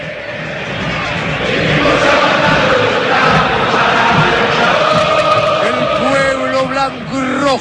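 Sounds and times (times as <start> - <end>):
stadium crowd shouting and chanting in the Monumental: 0.0 - 7.5.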